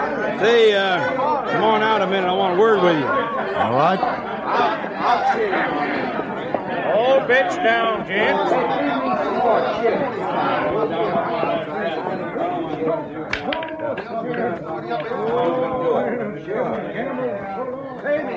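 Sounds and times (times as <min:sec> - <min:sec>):
dense overlapping crowd chatter: 0:00.0 - 0:18.3
speech: 0:00.4 - 0:06.3, 0:06.9 - 0:12.2
sharp clack: 0:13.3 - 0:15.2.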